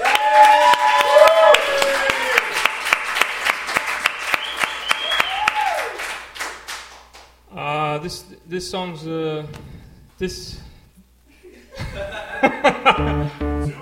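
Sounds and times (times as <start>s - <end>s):
crowd whoops and cheering voices: 0.0s - 2.7s, 4.3s - 6.1s
audience applause: 0.0s - 7.1s
speech: 8.1s - 10.7s, 12.4s - 13.8s
laughter: 11.3s - 13.8s.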